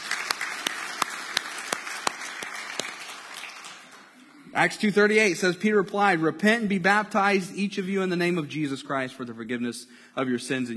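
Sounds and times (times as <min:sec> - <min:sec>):
audience applause: 0:00.0 - 0:04.2
speech: 0:04.6 - 0:10.7.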